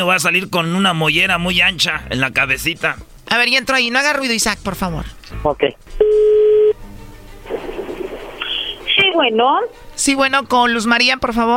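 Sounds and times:
speech: 0.0s - 6.0s, 9.2s - 11.5s
telephone dial tone: 6.0s - 6.8s
telephone line noise: 7.5s - 9.7s.

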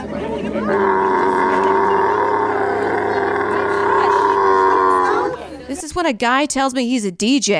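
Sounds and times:
camel scream: 0.7s - 5.4s
speech: 6.0s - 7.5s.

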